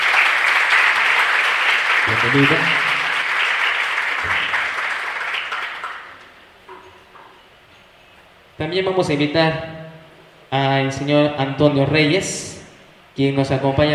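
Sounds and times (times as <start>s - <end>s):
audience applause: 0.0s - 6.2s
speech: 2.1s - 2.9s, 8.6s - 9.7s, 10.5s - 12.6s, 13.2s - 13.9s.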